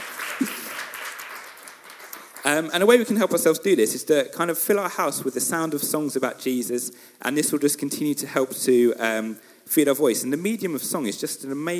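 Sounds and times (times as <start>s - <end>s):
round of applause: 0.0s - 2.7s
speech: 2.5s - 11.7s.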